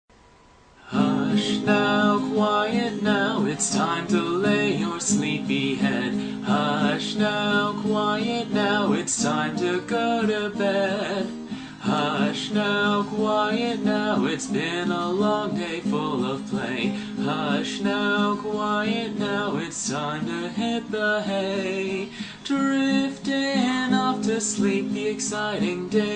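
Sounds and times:
guitar cover: 0.8s - 26.1s.

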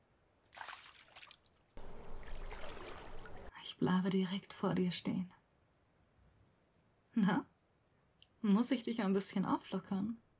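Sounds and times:
hands gliding through water: 0.5s - 3.5s
speech: 3.8s - 5.4s, 7.2s - 7.5s, 8.4s - 10.2s.

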